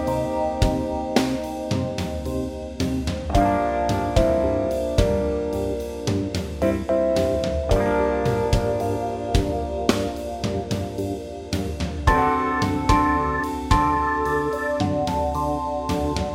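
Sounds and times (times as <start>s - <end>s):
backing track music: 0.0s - 16.3s
bass playing scales: 0.0s - 16.3s.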